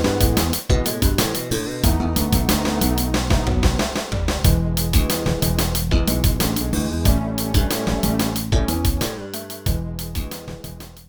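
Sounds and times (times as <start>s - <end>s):
slap bass: 0.0s - 11.0s.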